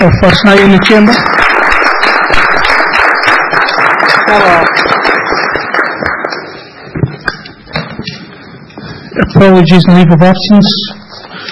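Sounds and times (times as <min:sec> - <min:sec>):
speech: 0:00.0 - 0:01.4, 0:04.3 - 0:04.9, 0:09.3 - 0:11.0
round of applause: 0:00.0 - 0:06.8.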